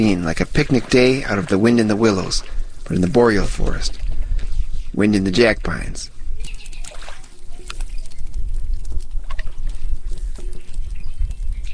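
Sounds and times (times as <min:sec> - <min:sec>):
speech: 0:00.0 - 0:04.0, 0:04.9 - 0:06.2
canoe paddle splashes on a forest creek: 0:00.0 - 0:04.6, 0:06.5 - 0:10.9
trickling water: 0:00.0 - 0:11.7.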